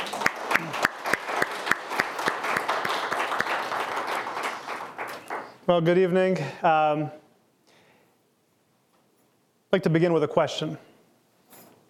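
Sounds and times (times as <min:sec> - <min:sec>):
audience applause: 0:00.0 - 0:05.6
speech: 0:05.7 - 0:07.2, 0:09.7 - 0:10.9.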